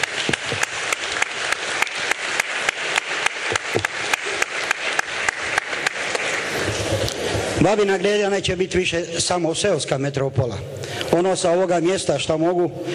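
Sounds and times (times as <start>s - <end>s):
crowd at a village gathering in Babina Greda applauding: 0.0s - 7.7s
speech: 7.6s - 12.9s.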